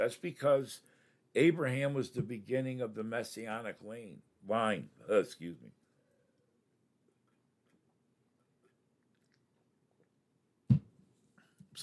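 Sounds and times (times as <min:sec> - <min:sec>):
speech: 0:00.0 - 0:05.8
person drinking water: 0:08.4 - 0:10.1.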